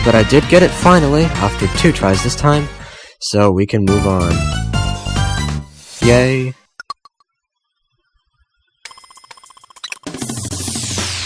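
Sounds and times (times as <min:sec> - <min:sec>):
speech: 0:00.0 - 0:04.7, 0:06.0 - 0:06.6
video game chime: 0:08.8 - 0:10.0.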